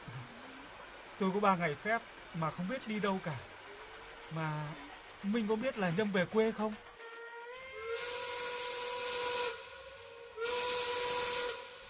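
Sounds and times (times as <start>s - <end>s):
speech: 1.2s - 3.5s, 4.3s - 6.9s
steam train whistle before departure: 7.0s - 11.8s.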